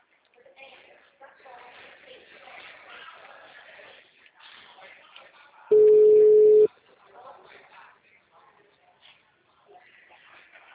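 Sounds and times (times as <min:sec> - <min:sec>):
telephone busy signal tones: 0:05.7 - 0:06.7.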